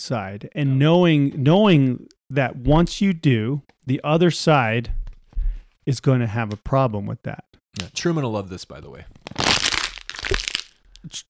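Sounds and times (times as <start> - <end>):
speech: 0.0 - 5.0, 5.8 - 9.6, 11.0 - 11.2
crushing a plastic water bottle: 9.1 - 11.2.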